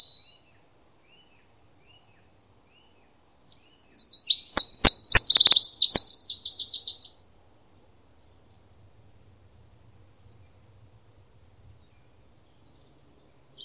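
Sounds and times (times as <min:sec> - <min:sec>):
bird high thin chirps: 0:03.9 - 0:07.1.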